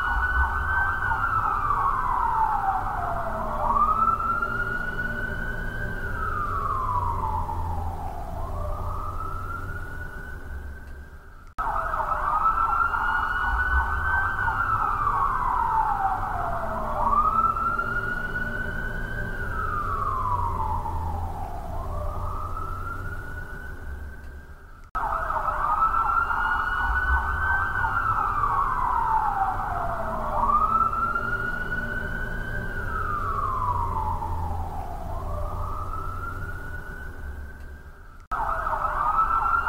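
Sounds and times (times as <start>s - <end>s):
busy city ambience: 0.0s - 39.6s
police siren in busy city: 0.0s - 39.6s.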